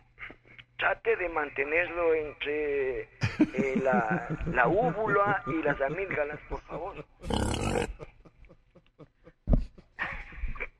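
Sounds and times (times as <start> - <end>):
speech: 0.9 - 7.4
laughter: 3.2 - 10.7
throat hawking to gather phlegm: 6.9 - 10.1.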